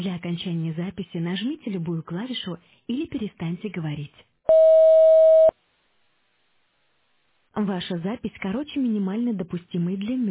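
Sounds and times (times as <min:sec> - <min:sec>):
speech: 0:00.0 - 0:05.0, 0:07.6 - 0:10.2
answering machine recording signal beep: 0:04.5 - 0:05.5.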